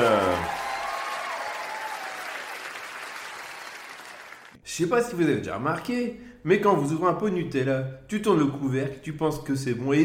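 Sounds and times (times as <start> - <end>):
crowd applauding: 0.0 - 4.6
speech: 4.7 - 10.0.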